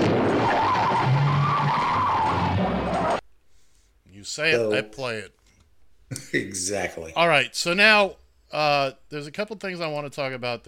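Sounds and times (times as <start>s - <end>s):
tire screech sound effect for an emergency turn: 0.0s - 3.2s
speech: 4.3s - 5.4s, 6.1s - 10.6s.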